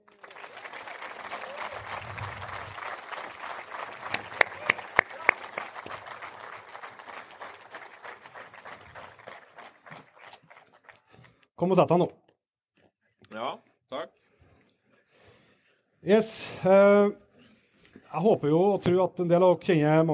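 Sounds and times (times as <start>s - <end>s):
audience applause: 0.0s - 11.4s
speech: 11.6s - 12.2s, 16.1s - 17.2s, 18.1s - 20.1s.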